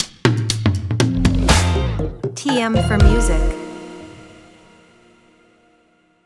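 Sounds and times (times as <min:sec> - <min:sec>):
audio logo jingle: 0:01.1 - 0:04.6.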